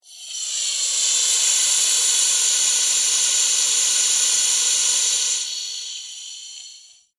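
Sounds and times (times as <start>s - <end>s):
sci-fi pneumatic release hiss: 0.0s - 7.1s.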